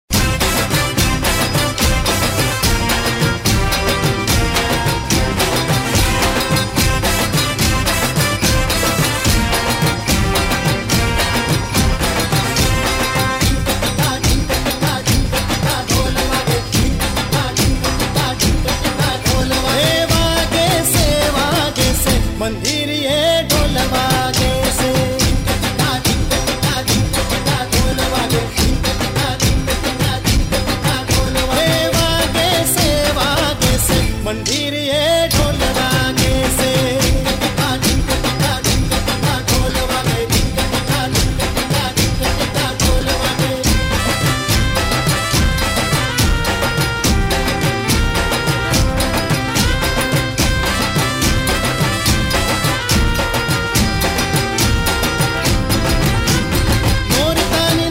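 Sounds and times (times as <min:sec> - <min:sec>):
dhol drumming: 0:00.1 - 0:22.8, 0:23.5 - 0:34.6, 0:35.3 - 0:57.9.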